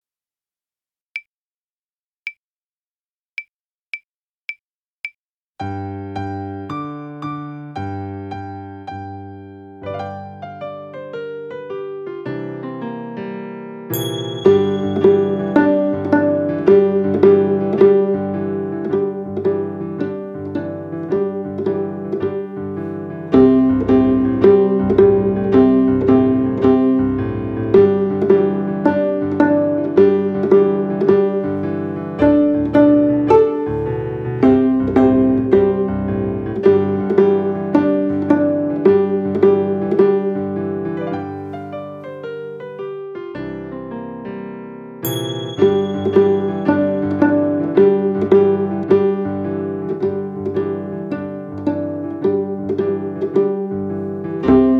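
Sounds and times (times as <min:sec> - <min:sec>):
viola playing blues: 0:14.8 - 0:41.3, 0:45.6 - 0:54.7.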